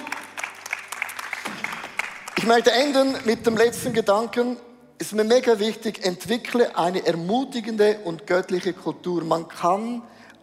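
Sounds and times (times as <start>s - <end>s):
audience applause: 0.0s - 2.9s
speech: 2.4s - 10.2s.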